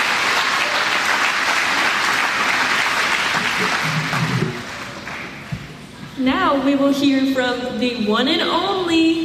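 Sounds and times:
audience applause: 0.0s - 5.5s
speech: 6.2s - 9.2s.

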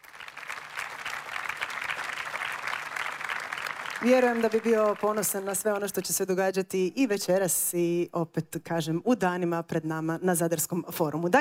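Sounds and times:
festival audience applause in Zadar: 0.0s - 6.0s
speech: 4.0s - 11.3s.

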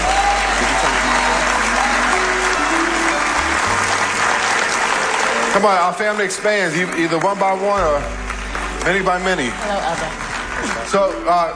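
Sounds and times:
audience applause: 0.0s - 11.5s
speech: 5.6s - 8.2s, 8.8s - 11.5s.

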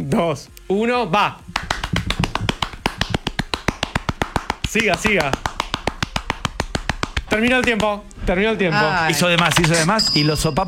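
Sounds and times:
speech: 0.1s - 1.6s, 4.7s - 5.5s, 7.3s - 10.6s
one person clapping hands rapidly: 1.5s - 8.1s.

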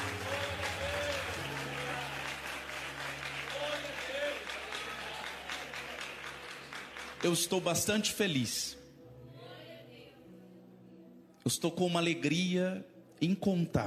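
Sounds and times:
audience applause: 0.0s - 8.1s
speech: 7.2s - 8.8s, 11.5s - 13.8s.

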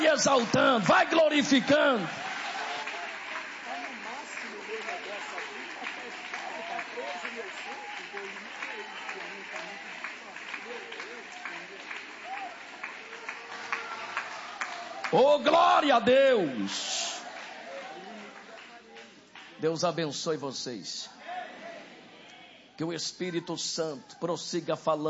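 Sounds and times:
audience applauding: 0.0s - 19.8s
speech: 0.1s - 2.3s, 15.1s - 16.9s, 19.6s - 21.2s, 22.8s - 25.0s.

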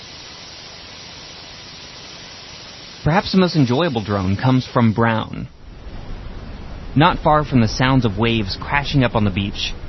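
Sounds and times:
hissing high-frequency blue noise: 0.0s - 9.8s
speech: 3.0s - 5.6s, 7.0s - 9.8s.

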